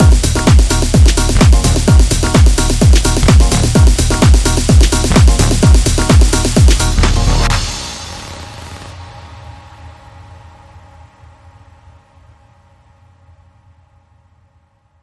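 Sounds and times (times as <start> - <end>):
club music sting: 0.0 - 9.3.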